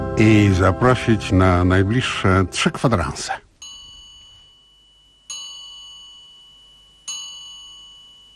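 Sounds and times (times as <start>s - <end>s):
speech: 0.2s - 3.5s
radio station signal chime: 3.6s - 8.3s.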